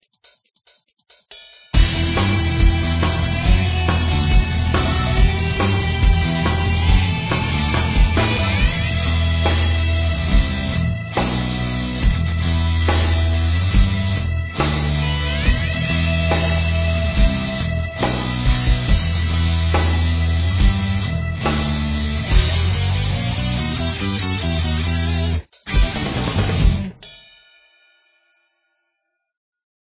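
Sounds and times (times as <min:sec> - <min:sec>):
background music: 0:01.8 - 0:27.0.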